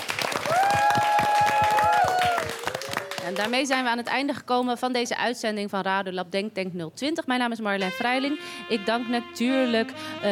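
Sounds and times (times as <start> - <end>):
audience applause: 0.0 - 3.9
cheers and whoops: 0.4 - 3.2
speech: 3.3 - 10.2.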